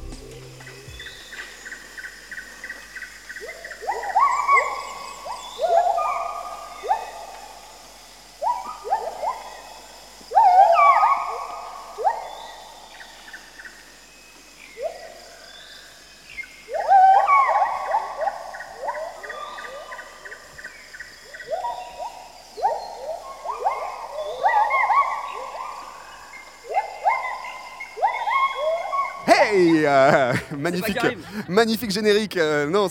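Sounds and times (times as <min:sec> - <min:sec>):
gibbon calls: 0:03.4 - 0:07.4, 0:08.4 - 0:09.7, 0:10.3 - 0:12.7, 0:16.7 - 0:20.6, 0:21.2 - 0:31.3
laughter: 0:29.3 - 0:32.0
speech: 0:30.6 - 0:32.8.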